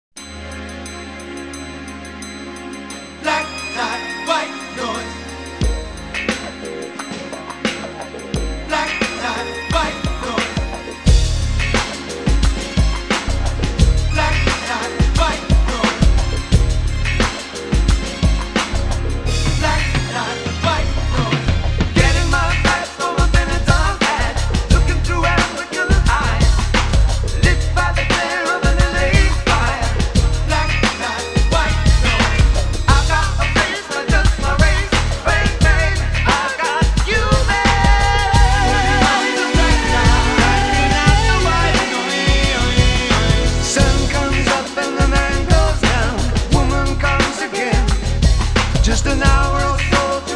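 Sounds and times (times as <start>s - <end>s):
radio music mix: 0.0s - 50.3s.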